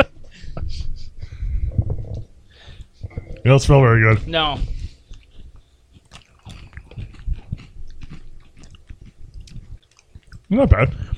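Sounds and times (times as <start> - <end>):
speech: 3.4 - 4.7, 10.6 - 11.0
crunchy Thai snack crackers being bitten and chewed: 4.2 - 11.1.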